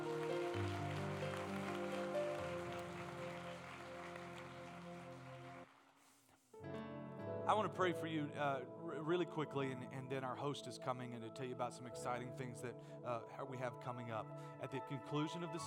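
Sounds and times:
audience clapping hands: 0.0s - 6.0s
speech: 7.5s - 15.6s.

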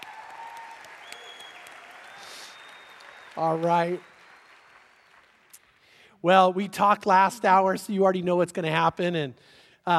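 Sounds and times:
church congregation applause welcoming a speaker: 0.0s - 6.0s
speech: 3.4s - 4.1s, 6.2s - 9.9s.

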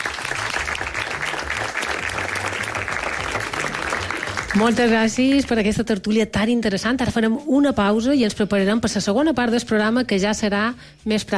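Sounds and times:
audience applause: 0.0s - 5.0s
speech: 4.5s - 11.3s.

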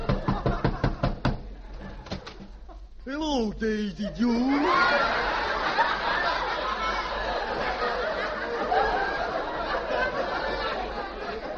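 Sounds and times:
laughter: 0.0s - 1.1s, 2.6s - 11.5s
knocking on a door: 0.0s - 1.5s
speech: 3.1s - 5.3s.

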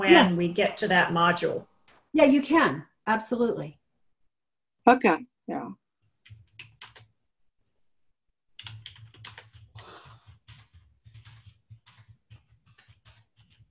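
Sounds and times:
speech: 0.0s - 3.8s, 4.8s - 5.8s
fingers typing on a computer keyboard: 6.2s - 7.1s, 8.6s - 13.7s.

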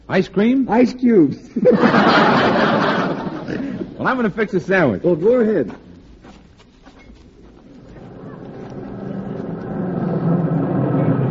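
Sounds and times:
speech: 0.1s - 5.9s
laughter: 1.5s - 5.0s, 7.8s - 11.2s
milk truck engine rumbling as it pulls in: 7.6s - 11.2s.

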